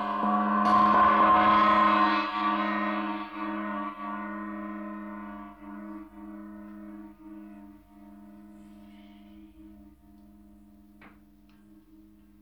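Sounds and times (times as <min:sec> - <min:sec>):
cymbal struck: 0:00.0 - 0:05.8.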